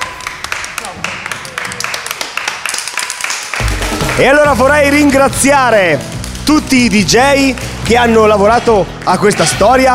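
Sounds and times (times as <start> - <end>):
applause: 0.0 - 5.4
speech: 4.2 - 9.9.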